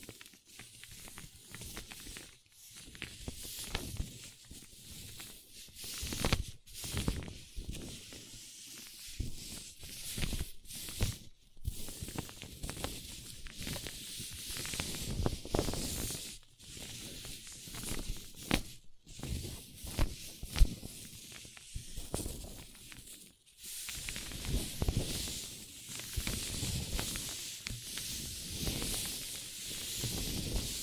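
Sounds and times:
paper cup rubbed, tapped and crinkled: 0.2s - 30.8s.

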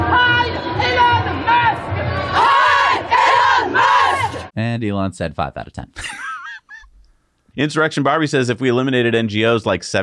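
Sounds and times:
crowd of activists shouting slogans in unison: 0.0s - 4.5s
speech: 4.7s - 6.2s, 7.6s - 10.0s
laughter: 6.0s - 7.0s.

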